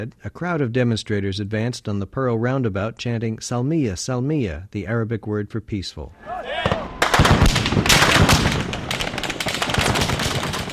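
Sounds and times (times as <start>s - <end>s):
speech: 0.0s - 6.8s
troops firing live ammunition: 6.6s - 10.7s.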